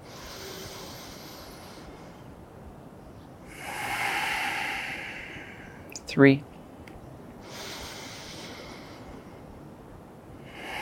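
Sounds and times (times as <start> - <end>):
slow deep breathing during a guided breathing exercise: 0.0 - 2.7, 3.4 - 5.9, 7.4 - 10.8
speech: 6.1 - 6.5.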